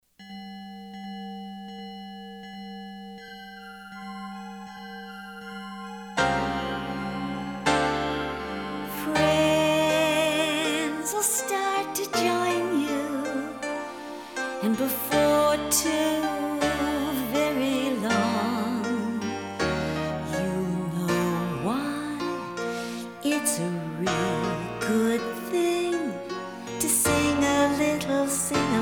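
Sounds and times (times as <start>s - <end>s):
children's sing-along song: 6.3s - 19.6s, 20.2s - 28.7s.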